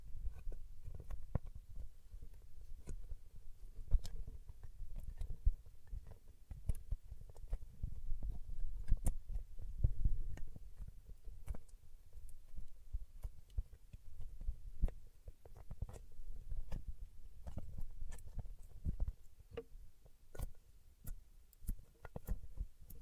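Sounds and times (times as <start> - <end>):
paraffin wax peeled tapped and scratched: 0.1 - 23.0.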